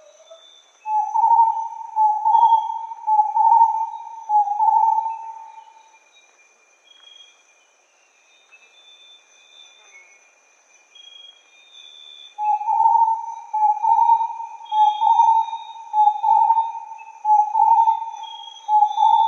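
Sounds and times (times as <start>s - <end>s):
starred wood quail calling: 0.0s - 5.7s, 12.4s - 19.2s.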